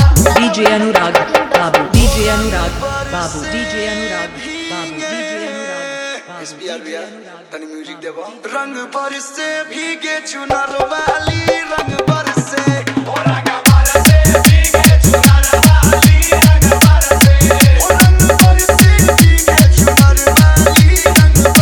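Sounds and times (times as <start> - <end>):
dholak in Bhojpuri Holi music: 0.0 - 4.7, 10.5 - 21.6
tabla: 0.0 - 4.7, 10.5 - 21.6.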